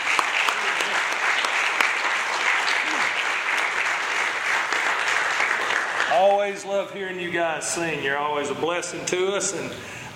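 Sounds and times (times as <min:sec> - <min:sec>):
audience hand clapping applause: 0:00.0 - 0:06.7
speech: 0:06.5 - 0:10.0.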